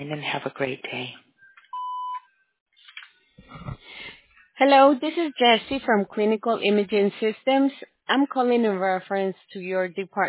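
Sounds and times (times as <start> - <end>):
speech: 0.0 - 1.3, 4.6 - 10.2
answering machine voicemail beep: 1.7 - 2.3.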